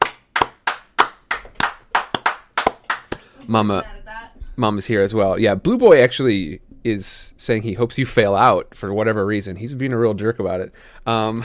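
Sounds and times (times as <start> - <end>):
round of applause: 0.0 - 3.2
speech: 3.5 - 4.0, 4.6 - 11.4.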